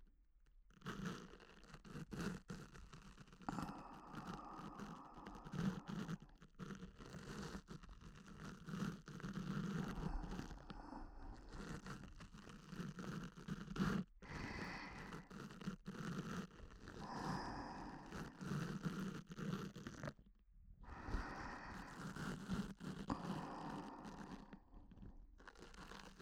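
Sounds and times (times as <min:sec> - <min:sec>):
luxury ASMR ear cleaning in left ear: 0:01.4 - 0:20.1, 0:20.9 - 0:24.7.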